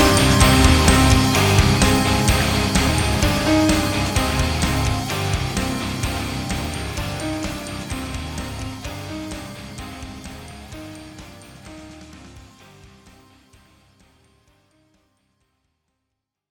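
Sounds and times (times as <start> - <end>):
rock metal music: 0.0 - 14.3.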